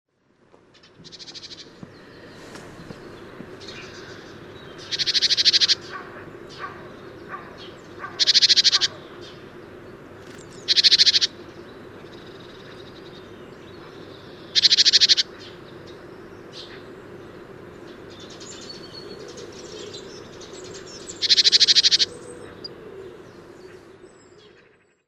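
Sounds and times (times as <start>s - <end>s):
great tit chattering: 1.0s - 2.2s, 2.8s - 9.4s, 10.2s - 11.4s, 12.0s - 15.6s, 20.7s - 22.7s.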